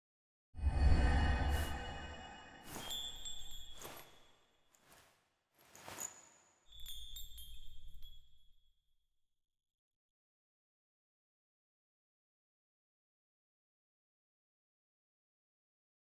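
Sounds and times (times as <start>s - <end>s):
bells ringing: 1.5s - 4.2s.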